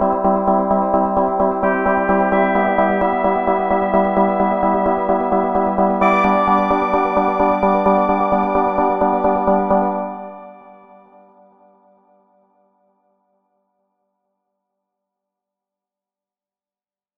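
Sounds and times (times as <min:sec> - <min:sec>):
ambient organ music: 0:00.0 - 0:11.4.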